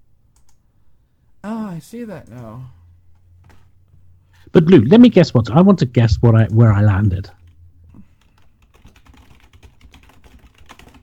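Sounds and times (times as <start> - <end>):
speech: 1.7 - 2.8, 4.5 - 7.4
typing on a computer keyboard: 7.4 - 11.0.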